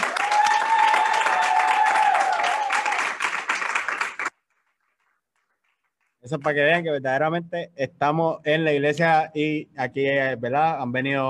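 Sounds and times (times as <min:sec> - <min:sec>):
audience applauding: 0:00.0 - 0:06.0
speech: 0:06.3 - 0:11.2.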